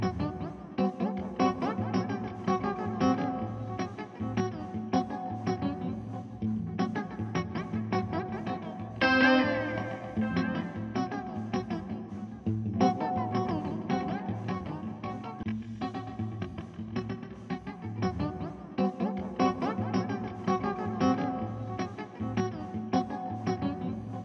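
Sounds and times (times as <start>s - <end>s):
guitar: 0.0s - 24.2s.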